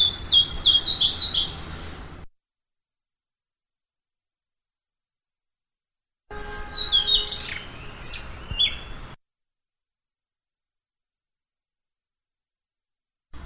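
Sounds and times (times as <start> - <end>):
blue-throated flycatcher song: 0.0 - 2.3, 6.3 - 9.2.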